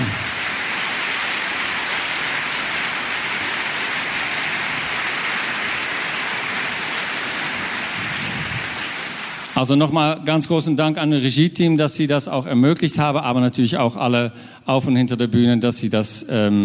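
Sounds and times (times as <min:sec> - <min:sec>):
audience applause: 0:00.0 - 0:09.6
speech: 0:09.6 - 0:16.6.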